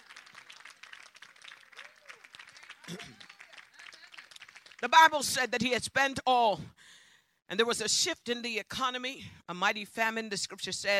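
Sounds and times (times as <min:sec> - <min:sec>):
audience clapping hands: 0:00.0 - 0:05.2
speech: 0:02.9 - 0:03.3, 0:04.8 - 0:06.8, 0:07.5 - 0:10.9.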